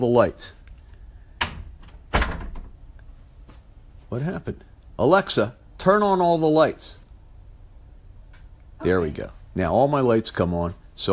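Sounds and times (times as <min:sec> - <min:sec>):
speech: 0:00.0 - 0:00.6, 0:04.1 - 0:07.0, 0:08.8 - 0:11.1
house front door being opened: 0:01.4 - 0:02.8.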